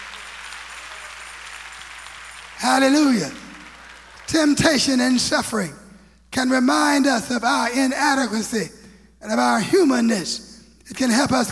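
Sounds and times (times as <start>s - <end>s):
crowd clapping hands: 0.0s - 5.2s
speech: 2.6s - 3.4s, 4.3s - 11.4s.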